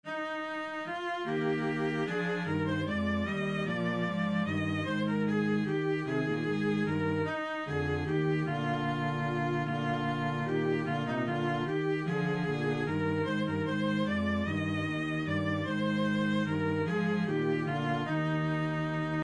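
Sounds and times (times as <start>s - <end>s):
viola playing a minuet: 0.0s - 19.2s.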